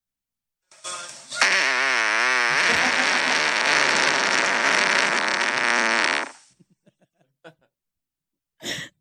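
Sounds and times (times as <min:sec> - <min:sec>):
burst of noise: 0:01.4 - 0:06.4
recorded fart played back: 0:01.4 - 0:06.5
laughter: 0:02.6 - 0:03.6, 0:06.6 - 0:07.7.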